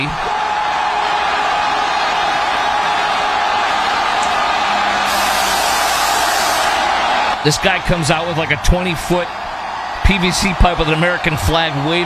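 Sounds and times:
crowd cheering: 0:00.0 - 0:12.0
crowd chanting USA: 0:00.3 - 0:08.4
speech: 0:07.4 - 0:09.4, 0:10.1 - 0:12.0.

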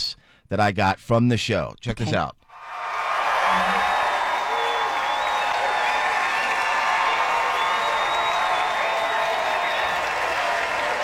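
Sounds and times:
speech: 0:00.5 - 0:02.4
theatre audience standing ovation at Studio 54: 0:02.5 - 0:11.0
shrill whistles and whoops: 0:02.6 - 0:11.0.

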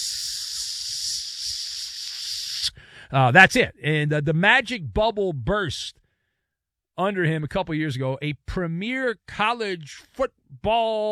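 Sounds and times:
grill sizzling sound effect: 0:00.0 - 0:02.6
speech: 0:02.6 - 0:06.0, 0:07.0 - 0:11.1.

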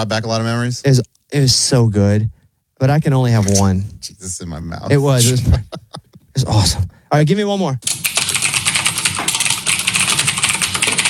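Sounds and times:
speech: 0:00.0 - 0:08.0
laughter: 0:04.9 - 0:06.7
typing on a mechanical keyboard: 0:07.8 - 0:11.0.

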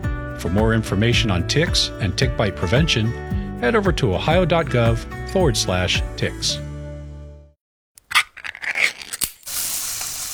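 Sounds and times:
speech: 0:00.4 - 0:06.7
Spam sizzling in a pan: 0:09.4 - 0:10.3.

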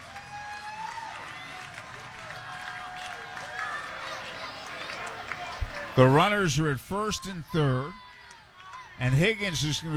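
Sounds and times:
baseball crowd applauding the batter: 0:00.0 - 0:06.2
baseball crowd noise: 0:00.8 - 0:09.9
speech: 0:06.0 - 0:08.0, 0:09.0 - 0:09.9.

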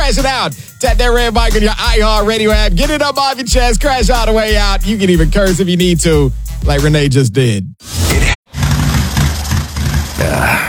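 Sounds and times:
speech: 0:00.1 - 0:08.3
motorcycle engine sputtering: 0:08.5 - 0:10.3.

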